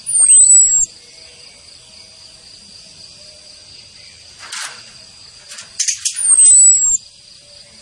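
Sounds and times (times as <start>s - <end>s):
orange-headed thrush giving thin high falling whistle: 0.1s - 0.9s, 5.8s - 7.0s.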